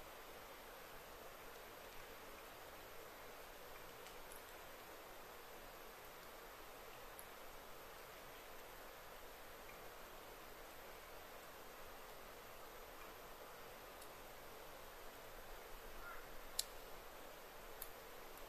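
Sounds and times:
soft steady hiss in a wild forest thicket: 0.0 - 18.4
faint insect chirps: 9.1 - 17.1.

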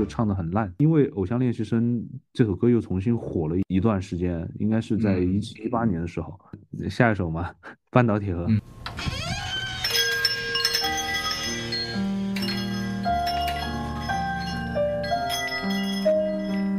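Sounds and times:
speech: 0.0 - 9.2
wind chimes at a song's intro: 9.7 - 16.7.

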